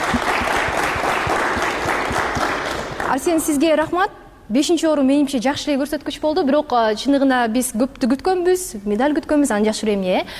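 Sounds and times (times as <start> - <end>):
studio audience applauding Olympic athletes and coaches: 0.0 - 3.2
speech: 3.1 - 10.3.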